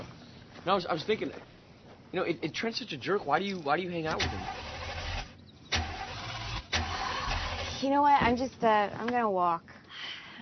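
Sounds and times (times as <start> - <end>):
speech: 0.6 - 1.5, 2.1 - 4.6, 7.8 - 10.1
car engine being started: 4.0 - 8.0.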